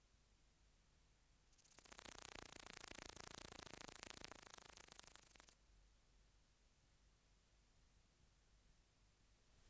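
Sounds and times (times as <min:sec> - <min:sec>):
bush-cricket song: 0:01.5 - 0:05.6.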